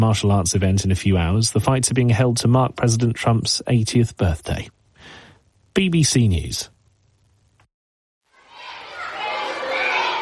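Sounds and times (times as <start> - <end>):
speech: 0.0 - 4.8, 5.8 - 6.7
excited small schoolboys chattering and shouting in primary school corridors in Khartoum: 8.3 - 10.2.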